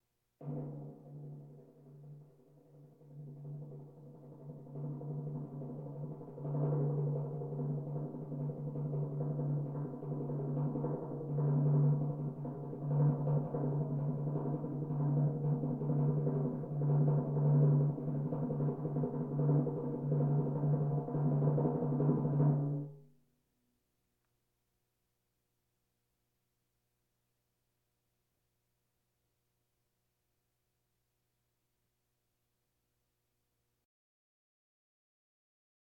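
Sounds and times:
drums: 0.0 - 23.0
bongos: 0.4 - 23.1
timpani rolls: 3.0 - 22.9.

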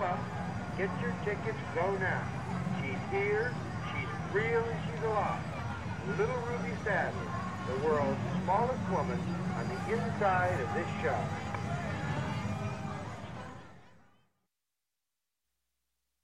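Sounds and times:
amusement park midway crowd: 0.0 - 14.3.

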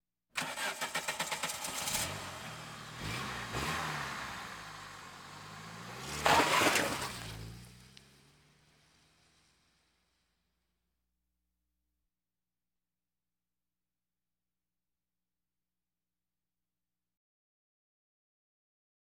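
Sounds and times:
various automobiles: 0.4 - 10.2.

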